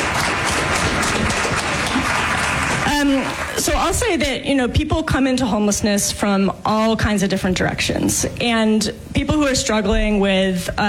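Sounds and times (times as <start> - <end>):
audience applause: 0.0 - 3.6
speech: 3.1 - 10.8.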